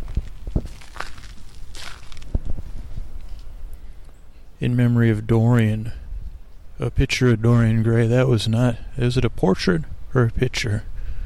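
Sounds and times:
footsteps on crushed stone at Golden Gate Park: 0:00.0 - 0:03.5
faint ambience: 0:00.0 - 0:11.2
speech: 0:04.6 - 0:06.0, 0:06.8 - 0:11.2.

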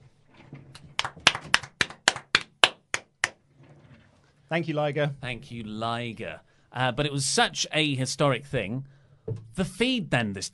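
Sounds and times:
standing ovation applause: 0:00.8 - 0:03.4
speech: 0:04.5 - 0:10.5.

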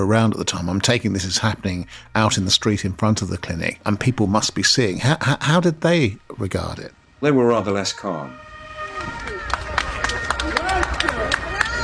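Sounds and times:
speech: 0:00.0 - 0:09.4
passers-by cheering in the street: 0:08.4 - 0:11.8.

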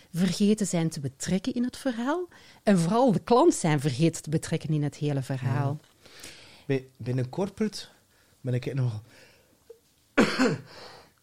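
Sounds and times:
speech: 0:00.1 - 0:09.2, 0:10.2 - 0:11.0
cough: 0:10.2 - 0:10.7.

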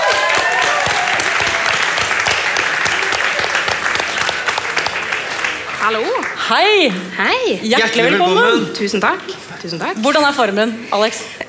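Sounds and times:
people whooping: 0:00.0 - 0:05.0
large audience applause: 0:00.0 - 0:07.0
speech: 0:05.9 - 0:11.4.

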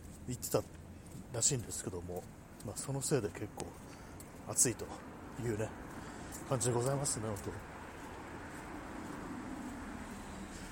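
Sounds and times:
passing car traffic outdoors: 0:00.0 - 0:10.7
speech: 0:00.3 - 0:05.9, 0:06.5 - 0:07.7.

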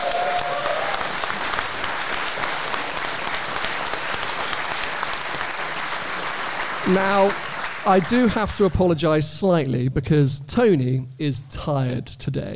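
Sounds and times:
live audience round of applause: 0:00.0 - 0:08.9
speech: 0:06.9 - 0:12.5.

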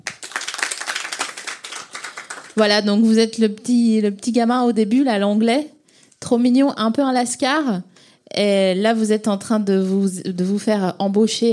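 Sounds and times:
applause: 0:00.0 - 0:02.8
speech: 0:02.6 - 0:11.5.

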